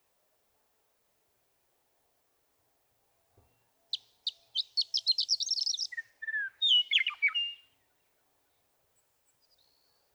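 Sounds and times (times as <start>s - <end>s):
Western meadowlark singing: 3.9s - 7.7s.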